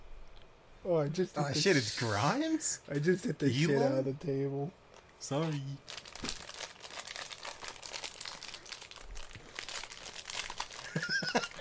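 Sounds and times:
speech: 0.8s - 6.4s
plastic wrapper of an Oreo being torn open: 4.9s - 11.2s.

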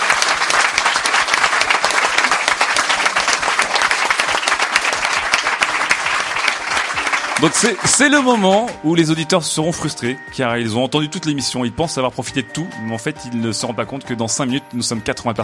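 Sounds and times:
audience applause: 0.0s - 8.8s
speech: 7.4s - 15.4s.

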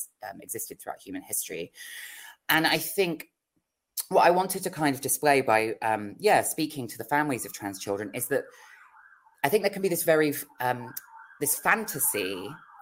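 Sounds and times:
speech: 0.0s - 3.4s, 4.1s - 8.7s, 9.4s - 12.7s
emergency vehicle sirens wailing outside a flat: 7.2s - 12.7s.

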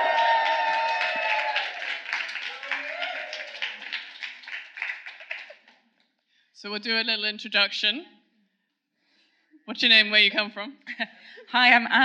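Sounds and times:
audience applause: 0.0s - 5.8s
speech: 6.6s - 8.2s, 9.8s - 12.0s.

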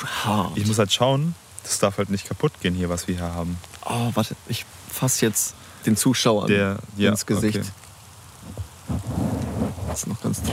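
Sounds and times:
light drizzle rain pattering: 0.0s - 10.5s
speech: 0.2s - 7.8s, 10.0s - 10.5s
low rumbling thumps: 8.4s - 10.5s.

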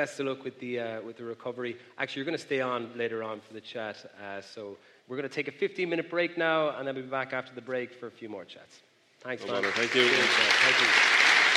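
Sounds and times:
speech: 0.0s - 11.2s
audience round of applause: 9.4s - 11.5s.

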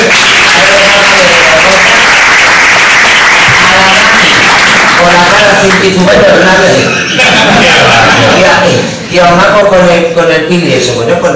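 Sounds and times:
audience applause: 0.0s - 6.0s, 7.1s - 8.6s
speech: 5.8s - 6.9s, 9.1s - 11.3s
laughter: 6.5s - 9.0s.

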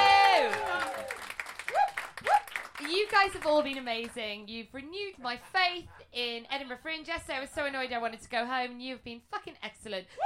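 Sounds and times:
loud whooping cheers: 0.0s - 2.6s
audience clapping: 0.0s - 4.3s
speech: 3.2s - 10.2s.

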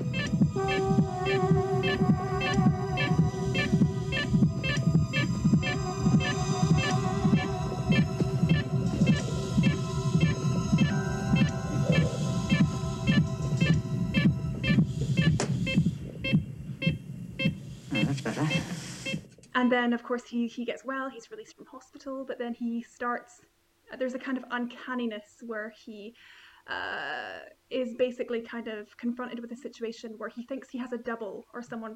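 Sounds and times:
deep throbbing pulse: 0.0s - 16.6s
constant low hum: 0.0s - 18.1s
heart monitor beeping: 0.0s - 19.3s
speech: 19.6s - 31.9s.

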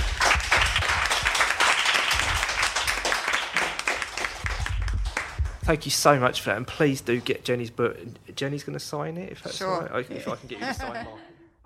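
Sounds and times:
audience applause: 0.0s - 5.6s
speech: 5.7s - 11.6s.

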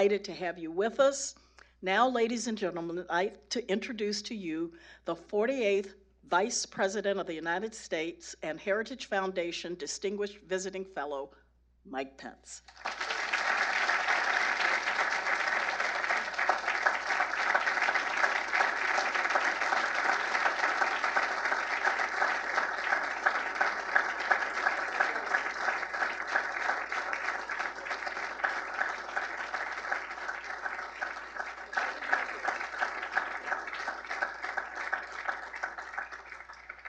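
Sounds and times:
speech: 0.0s - 13.0s
audience applause welcoming Mike Pence at the Heritage Foundation in Washington, D.C.: 12.7s - 36.8s.

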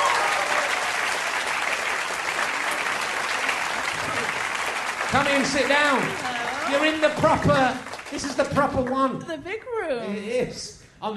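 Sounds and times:
audience applauding as a guest walks on stage: 0.0s - 9.1s
speech: 5.1s - 11.1s.

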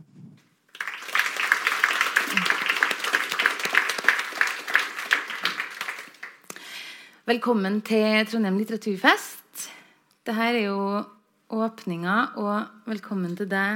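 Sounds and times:
audience applause: 0.7s - 6.5s
speech: 7.3s - 9.4s, 10.3s - 13.7s.

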